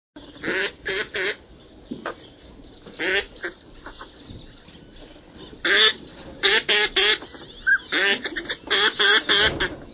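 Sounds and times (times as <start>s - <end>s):
Northern pintail quacking: 0.2s - 1.4s, 3.0s - 4.1s, 5.6s - 9.9s.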